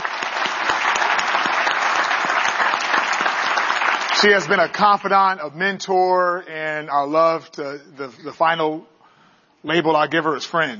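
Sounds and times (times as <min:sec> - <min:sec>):
audience applause: 0:00.0 - 0:05.0
speech: 0:04.2 - 0:08.9, 0:09.6 - 0:10.7.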